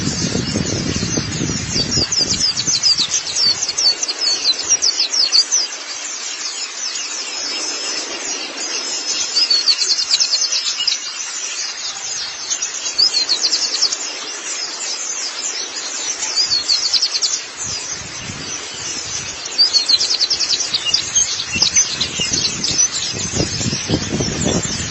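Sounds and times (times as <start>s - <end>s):
white-eye song: 0.0s - 24.8s.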